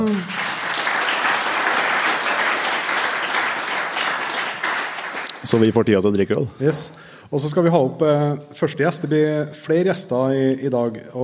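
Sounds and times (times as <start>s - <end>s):
audience applause: 0.0s - 5.8s
speech: 5.4s - 11.2s.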